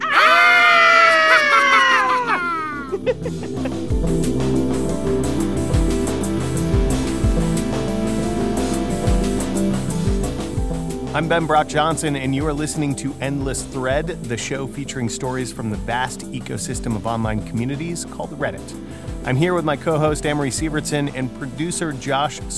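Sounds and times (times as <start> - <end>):
group giving mock-horror Halloween screams: 0.0 - 3.2
laughter: 0.0 - 3.9
steady musical bed with repeating low bass pattern: 2.9 - 22.5
speech: 11.2 - 22.5.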